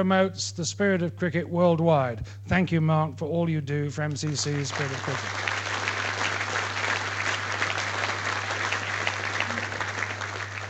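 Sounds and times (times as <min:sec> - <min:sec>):
speech: 0:00.0 - 0:05.6
audience applause: 0:04.3 - 0:10.6.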